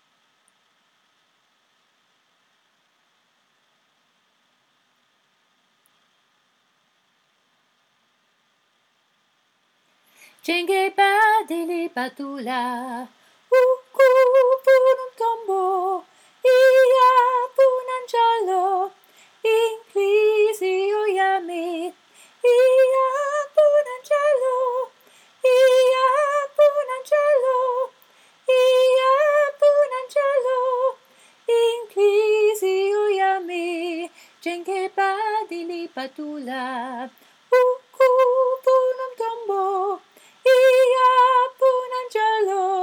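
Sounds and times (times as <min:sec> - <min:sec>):
soprano singing: 0:10.4 - 0:42.8.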